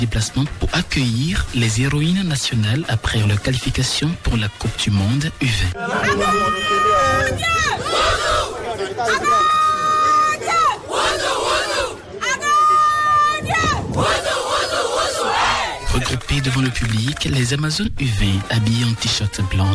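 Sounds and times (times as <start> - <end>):
speech: 0.0 - 9.6, 16.3 - 19.7
supporters' crowd noise and chatter: 0.0 - 19.7
Benin U20 women's football team shouting battle cry: 7.6 - 8.6, 10.4 - 12.0, 13.5 - 15.8.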